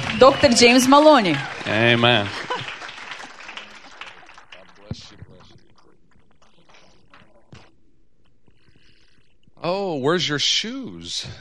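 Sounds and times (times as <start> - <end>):
audience applause welcoming a speaker: 0.0 - 5.6
laughter: 0.0 - 5.6, 9.7 - 11.3
speech: 0.2 - 2.5, 9.6 - 11.3.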